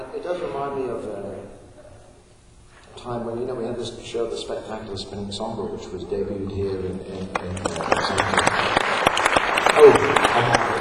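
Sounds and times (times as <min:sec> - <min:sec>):
speech: 0:00.2 - 0:01.6, 0:03.0 - 0:09.0, 0:09.8 - 0:10.7
audience applause at a vaudeville show: 0:07.3 - 0:10.7.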